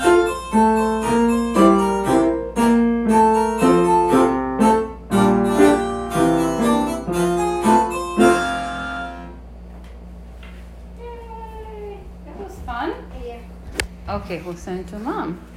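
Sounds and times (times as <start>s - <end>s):
two pianos playing a duet: 0.0s - 9.4s.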